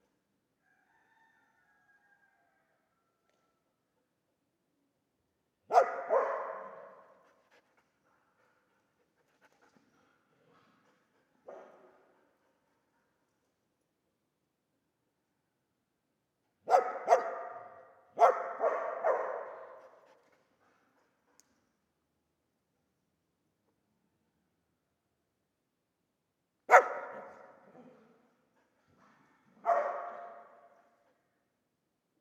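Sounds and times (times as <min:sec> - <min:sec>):
dog barking: 0:05.7 - 0:07.2, 0:11.4 - 0:12.1, 0:16.6 - 0:20.0, 0:26.7 - 0:28.1, 0:29.6 - 0:31.0.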